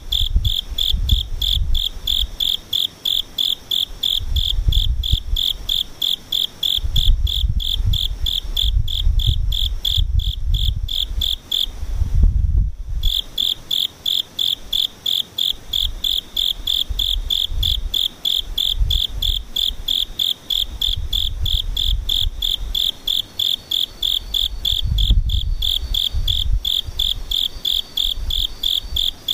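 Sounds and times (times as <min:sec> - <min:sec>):
low rumbling gusts: 0:00.0 - 0:02.4, 0:04.0 - 0:05.7, 0:06.8 - 0:13.3, 0:15.6 - 0:19.9, 0:20.6 - 0:22.8, 0:24.1 - 0:27.4
insects chirping: 0:00.0 - 0:11.8, 0:12.8 - 0:29.3.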